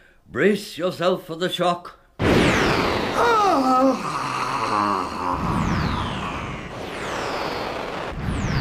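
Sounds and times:
speech: 0.3 - 2.3
fire squirting from a demon's eyes against a magic shield: 2.2 - 8.6
falling whistling sweeps: 5.4 - 8.6.

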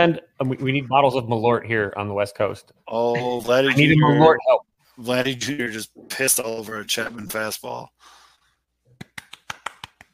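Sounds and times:
speech: 0.0 - 8.2
hand claps in a fast rhythm: 8.9 - 10.1.

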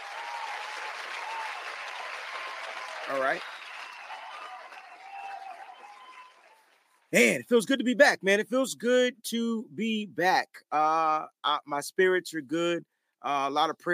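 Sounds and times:
round of applause: 0.0 - 7.2
speech: 3.1 - 3.6, 7.1 - 13.9.

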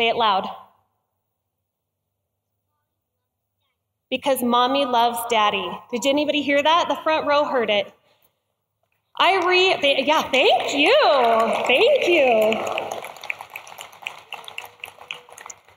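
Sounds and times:
speech: 0.0 - 0.6, 4.1 - 8.0, 9.2 - 12.9
audience clapping: 9.3 - 15.7.

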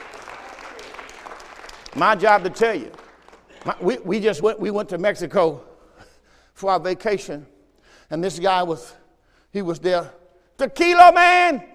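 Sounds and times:
audience clapping: 0.0 - 4.1
speech: 2.0 - 3.0, 3.6 - 5.7, 6.6 - 7.5, 8.1 - 11.7.

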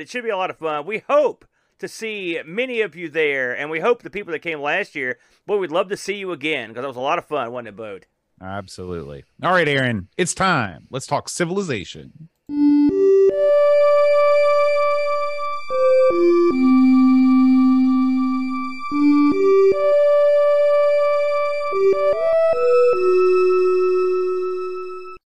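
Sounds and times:
speech: 0.0 - 12.8, 16.1 - 16.8
MIDI computer game music from speakers: 12.5 - 25.2.

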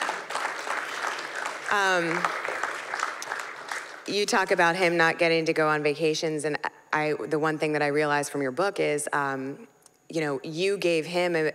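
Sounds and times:
crowd clapping: 0.0 - 4.3
speech: 1.7 - 2.5, 4.1 - 11.5.

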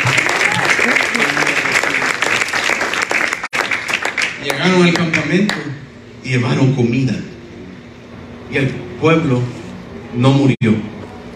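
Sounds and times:
audience applause: 0.0 - 5.6
speech: 4.4 - 7.3, 8.5 - 10.9.

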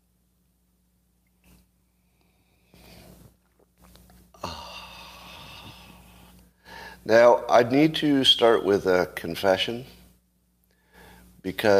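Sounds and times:
sipping a drink: 1.2 - 6.4
speech: 7.1 - 10.0, 11.4 - 11.7.

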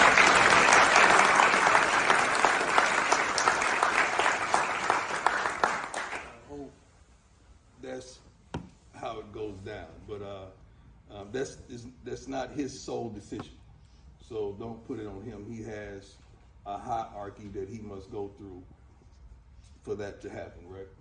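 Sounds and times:
audience applause: 0.0 - 6.4
speech: 11.3 - 13.6, 14.3 - 18.8, 19.8 - 21.0.

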